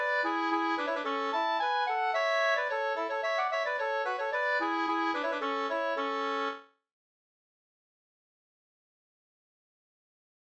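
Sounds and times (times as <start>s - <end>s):
polka: 0.0s - 6.7s.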